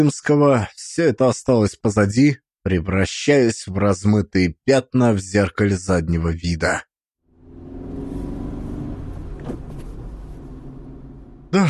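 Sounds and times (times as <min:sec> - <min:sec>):
speech: 0:00.0 - 0:06.9
car engine accelerating from a parking lot onto a main street: 0:07.3 - 0:11.6.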